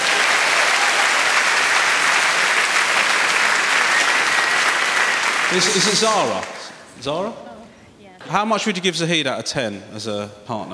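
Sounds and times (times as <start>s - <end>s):
audience applause: 0.0s - 6.8s
speech: 5.5s - 7.5s, 8.3s - 10.7s.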